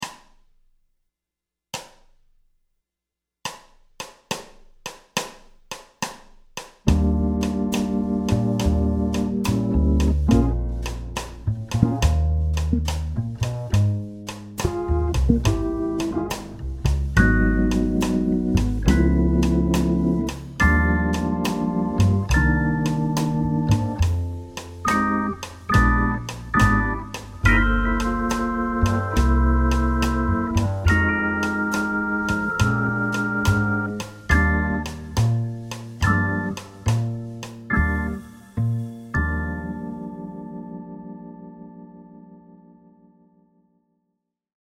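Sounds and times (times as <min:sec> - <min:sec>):
swing soundtrack music: 0:06.8 - 0:40.8.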